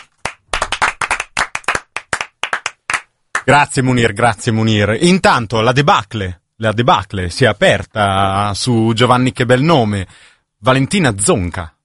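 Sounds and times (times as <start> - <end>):
handful of people clapping: 0.0 - 3.5
speech: 3.5 - 11.8.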